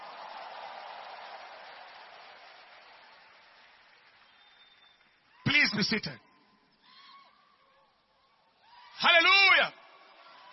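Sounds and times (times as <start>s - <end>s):
big clap: 0.0s - 5.8s
speech: 5.6s - 6.3s.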